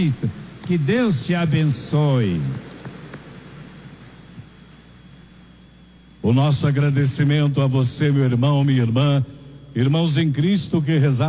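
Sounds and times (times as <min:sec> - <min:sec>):
speech: 0:00.0 - 0:02.7, 0:06.2 - 0:11.2
applause: 0:00.0 - 0:04.7.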